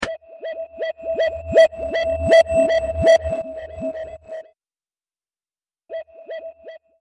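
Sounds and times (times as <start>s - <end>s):
modulating siren: 0.0s - 4.6s, 5.9s - 6.9s.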